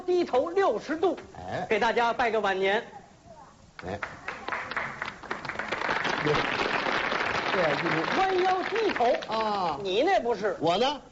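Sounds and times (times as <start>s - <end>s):
speech: 0.1s - 3.0s, 3.8s - 4.3s, 6.2s - 6.6s, 7.6s - 11.1s
audience applause: 3.8s - 9.6s.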